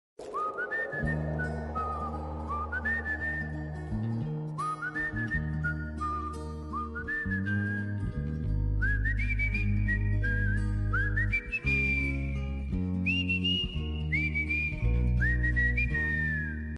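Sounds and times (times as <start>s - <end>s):
whistling background music: 0.2s - 16.7s.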